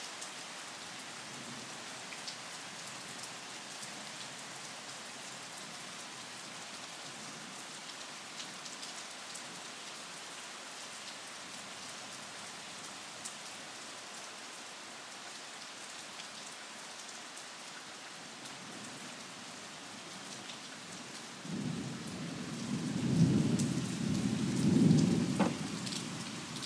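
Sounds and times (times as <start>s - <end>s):
thunderstorm at midnight: 21.4s - 26.5s.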